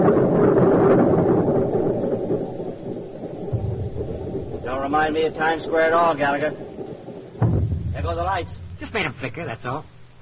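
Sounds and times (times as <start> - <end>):
depth charges exploding near submarine: 0.0 - 10.1
speech: 5.0 - 6.7, 8.1 - 10.1.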